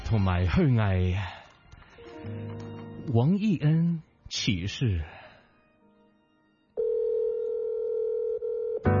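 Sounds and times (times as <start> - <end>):
speech: 0.1 - 1.4, 2.2 - 5.2
telephone dial tone: 6.8 - 8.9.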